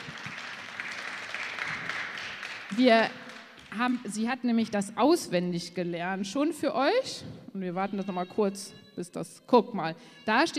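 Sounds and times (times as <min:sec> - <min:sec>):
audience applause: 0:00.0 - 0:03.8
speech: 0:02.7 - 0:10.5.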